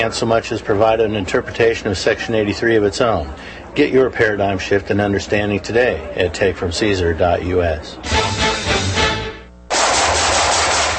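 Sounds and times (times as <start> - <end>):
speech: 0.0 - 8.4
rapid gunfire from shooting: 9.7 - 10.9.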